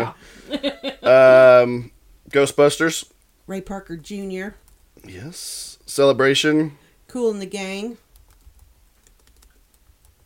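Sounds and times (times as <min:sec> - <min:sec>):
speech: 0:00.0 - 0:08.0
typing on a computer keyboard: 0:08.1 - 0:10.2.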